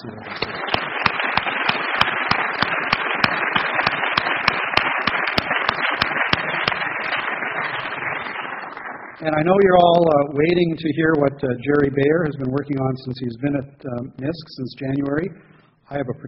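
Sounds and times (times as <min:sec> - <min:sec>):
speech: 0:00.0 - 0:00.4, 0:09.2 - 0:16.2
audience applause: 0:00.0 - 0:08.8.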